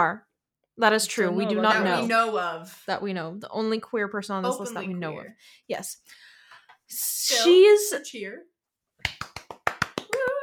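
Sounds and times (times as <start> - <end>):
speech: 0.0 - 6.3, 6.9 - 9.2
applause: 9.0 - 10.4.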